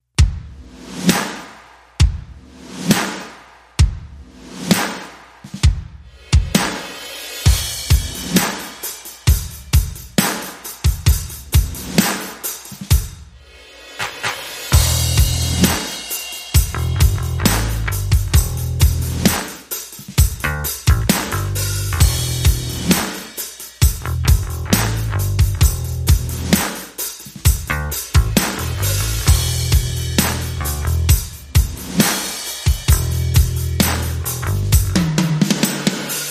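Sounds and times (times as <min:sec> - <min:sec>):
drums: 0:00.0 - 0:36.2
bass: 0:14.8 - 0:15.8, 0:16.6 - 0:19.4, 0:20.2 - 0:23.0, 0:23.8 - 0:26.7, 0:27.5 - 0:31.7, 0:32.9 - 0:35.3.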